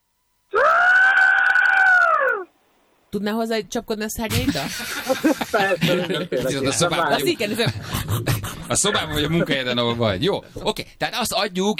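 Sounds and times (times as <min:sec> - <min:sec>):
person imitating a pterosaur's call: 0:00.5 - 0:02.5
speech: 0:03.1 - 0:11.7
laughter: 0:04.3 - 0:10.4.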